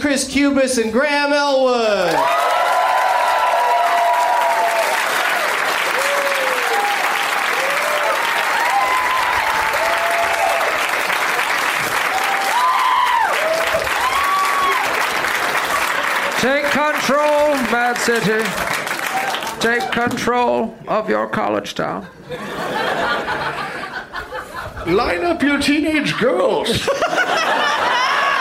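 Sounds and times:
speech: 0:00.0 - 0:02.5, 0:16.4 - 0:18.9, 0:19.6 - 0:23.7, 0:24.8 - 0:27.4
audience whoops and cheers: 0:02.0 - 0:10.9, 0:12.0 - 0:15.1, 0:19.0 - 0:19.5
live audience clapping at a movie-themed comedy show: 0:02.0 - 0:20.4
laughter: 0:15.5 - 0:16.7, 0:22.0 - 0:25.2, 0:25.9 - 0:28.3.

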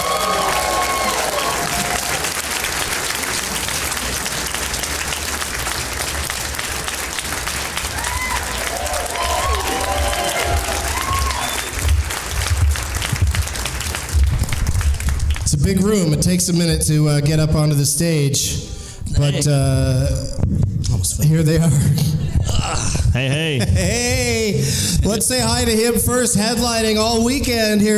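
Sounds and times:
comedy club audience cheering and whooping: 0:00.0 - 0:04.9, 0:06.1 - 0:13.9
comedy club audience applauding to welcome three comedians: 0:00.0 - 0:16.0
speech: 0:15.8 - 0:22.2, 0:22.8 - 0:27.9.

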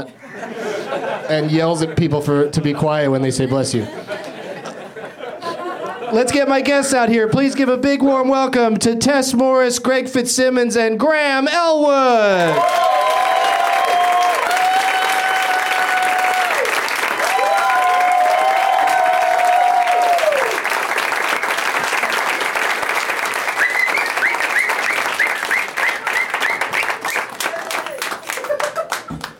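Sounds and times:
speech: 0:00.0 - 0:04.2, 0:06.1 - 0:12.9
laughter: 0:00.1 - 0:06.6, 0:27.4 - 0:29.3
audience applause: 0:12.4 - 0:29.3
high sliding whistles: 0:23.6 - 0:27.3.

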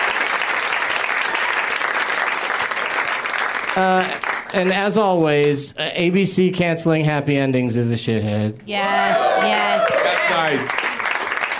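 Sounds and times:
audience applause: 0:00.0 - 0:04.9, 0:09.0 - 0:11.5
speech: 0:03.8 - 0:10.8.

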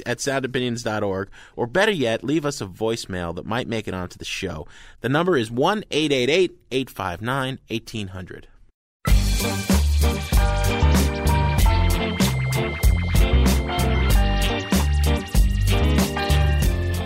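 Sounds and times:
speech: 0:00.0 - 0:08.5, 0:09.4 - 0:10.8
pop song with bouncy beat: 0:09.1 - 0:17.0.

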